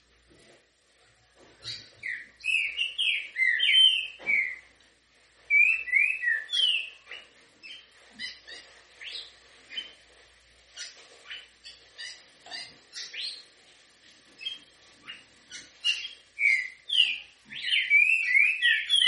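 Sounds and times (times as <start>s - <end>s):
Green-winged Saltator whistled song in canto grego mole com boi style: 2.0s - 4.7s, 5.5s - 7.8s, 16.4s - 19.0s.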